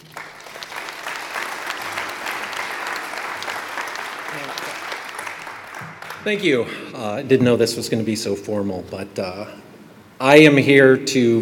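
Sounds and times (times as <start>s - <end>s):
audience applause welcoming a speaker: 0.0s - 6.5s
speech: 6.2s - 11.3s.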